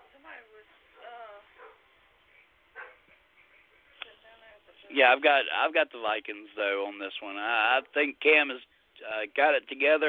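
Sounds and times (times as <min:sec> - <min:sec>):
dog barking: 0:01.6 - 0:01.8, 0:02.7 - 0:03.2
speech: 0:04.9 - 0:10.0.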